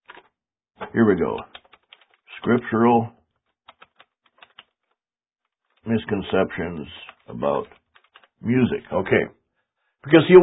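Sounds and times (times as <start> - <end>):
speech: 0.9 - 1.6, 2.4 - 3.2, 5.8 - 7.8, 8.4 - 9.4, 10.0 - 10.4
typing on a keyboard: 1.3 - 2.2, 3.7 - 4.8, 7.0 - 8.4.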